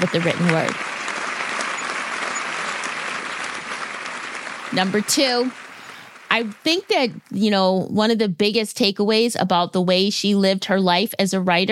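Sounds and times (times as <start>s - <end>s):
speech: 0.0s - 0.9s, 4.7s - 5.6s, 6.3s - 11.7s
applause: 0.0s - 7.5s.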